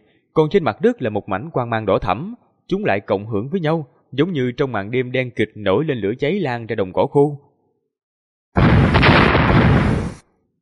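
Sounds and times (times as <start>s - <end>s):
speech: 0.4s - 7.5s
rumbling explosions from underground: 8.6s - 10.2s.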